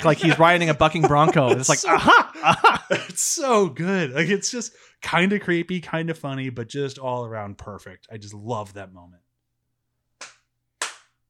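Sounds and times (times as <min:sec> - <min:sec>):
laughter: 0:00.0 - 0:04.6
speech: 0:00.0 - 0:09.2
hand clapping: 0:10.2 - 0:11.2.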